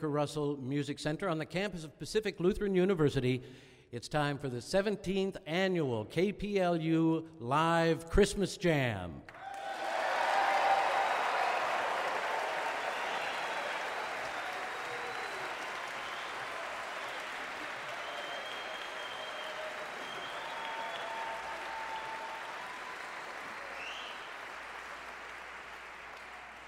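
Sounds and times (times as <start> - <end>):
speech: 0.0 - 9.4
long audience applause: 9.3 - 26.6.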